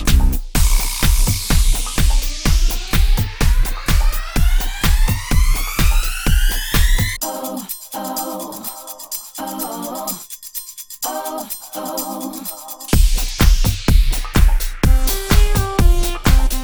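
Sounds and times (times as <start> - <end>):
126 bpm tech house intro: 0.0 - 7.2, 12.9 - 16.6.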